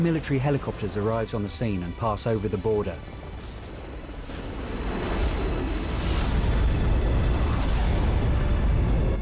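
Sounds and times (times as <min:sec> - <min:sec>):
speech: 0:00.0 - 0:03.2
film explosions blowing up rebel forces in fireballs: 0:03.5 - 0:09.1.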